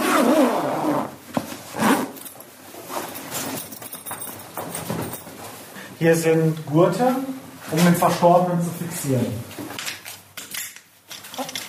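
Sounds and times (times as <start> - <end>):
zipper closing on a body bag: 0.0 - 2.4
speech: 6.0 - 9.6.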